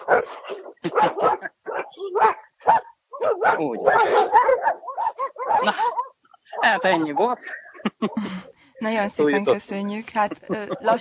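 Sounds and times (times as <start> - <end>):
dogs barking: 0.0 - 7.8
speech: 0.1 - 1.5, 3.6 - 4.8, 5.6 - 5.9, 6.6 - 11.0
laughter: 0.8 - 1.6, 5.6 - 6.0, 6.7 - 8.5, 10.1 - 11.0.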